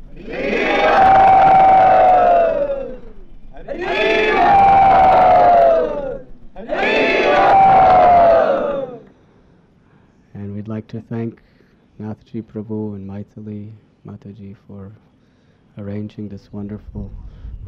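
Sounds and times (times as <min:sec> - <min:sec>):
crowd at a rooftop devotional gathering chanting in welcome: 0:00.0 - 0:09.1
speech: 0:10.9 - 0:15.1, 0:15.8 - 0:17.6.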